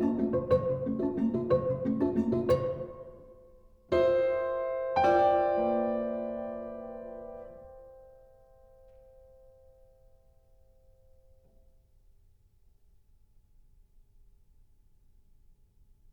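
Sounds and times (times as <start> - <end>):
prepared piano: 0.0 - 11.8.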